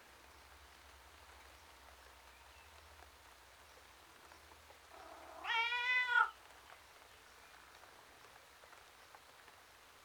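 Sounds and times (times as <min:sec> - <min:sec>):
male tom cat meowing miserably outdoors: 0:05.4 - 0:06.3.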